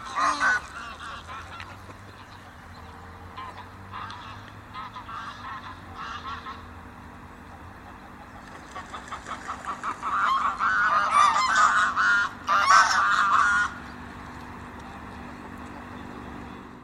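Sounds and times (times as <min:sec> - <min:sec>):
Egyptian goose honking: 0:00.0 - 0:02.5, 0:03.3 - 0:06.8, 0:07.8 - 0:13.9
low steady hum: 0:00.0 - 0:16.8.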